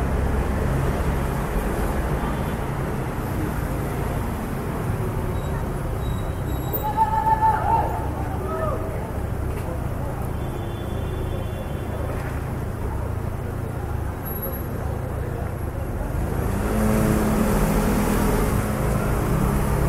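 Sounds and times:
city traffic rumble: 0:00.0 - 0:19.8
brief voices: 0:00.6 - 0:19.8.

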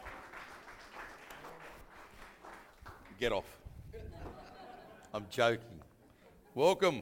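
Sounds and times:
audience applause: 0:00.0 - 0:03.2
speech: 0:03.2 - 0:04.1, 0:05.1 - 0:05.9, 0:06.6 - 0:07.0
laughter: 0:03.9 - 0:05.3.

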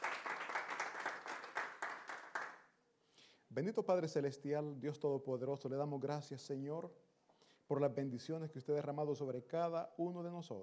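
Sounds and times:
crowd applauding: 0:00.0 - 0:02.6
speech: 0:03.5 - 0:07.1, 0:07.7 - 0:10.6.

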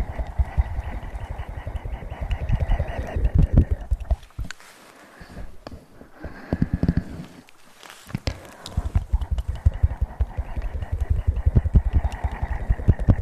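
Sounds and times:
wet mouth noises: 0:00.0 - 0:04.7, 0:05.4 - 0:13.2
intense ear massage rubbing and crackling: 0:00.0 - 0:13.2.

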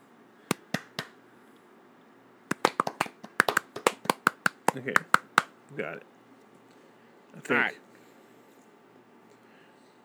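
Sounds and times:
audience clapping on a count: 0:00.5 - 0:01.2, 0:02.5 - 0:05.5
speech: 0:04.7 - 0:06.2, 0:07.3 - 0:07.8.

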